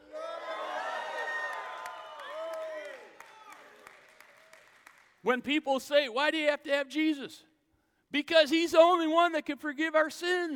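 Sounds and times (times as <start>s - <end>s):
crowd shouting and cheering with whoops: 0.0s - 3.9s
people clapping: 0.4s - 5.2s
speech: 5.2s - 7.5s, 8.1s - 10.5s.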